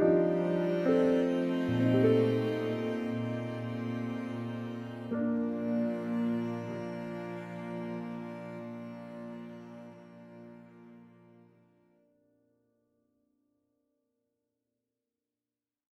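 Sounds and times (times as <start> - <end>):
classical piano piece: 0.0 - 11.6.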